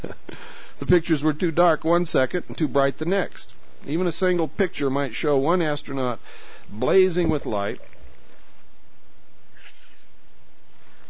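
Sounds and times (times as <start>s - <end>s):
speech: 0.9s - 7.9s
person sneezing: 9.5s - 10.1s.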